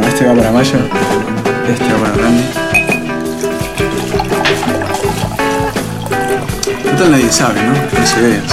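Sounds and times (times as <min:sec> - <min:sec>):
speech: 0:00.2 - 0:02.7, 0:06.9 - 0:08.5
wine pouring into a glass: 0:02.6 - 0:08.5.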